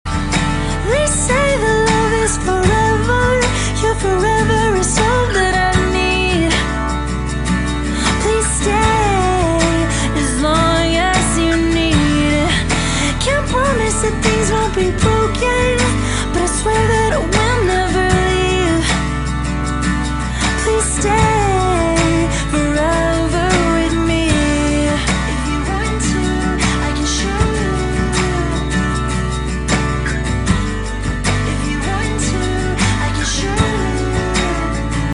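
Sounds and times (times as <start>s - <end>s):
acoustic music: 0.0s - 35.1s.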